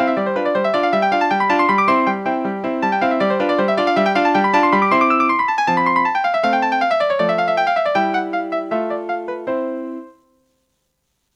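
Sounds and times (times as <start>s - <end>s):
classical music on Roland SD-50 sound module: 0.0s - 10.3s.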